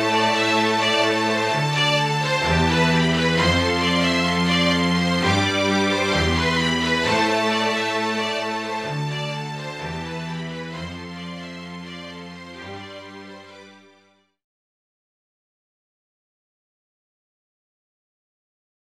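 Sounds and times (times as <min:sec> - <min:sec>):
strings: 0:00.0 - 0:14.1.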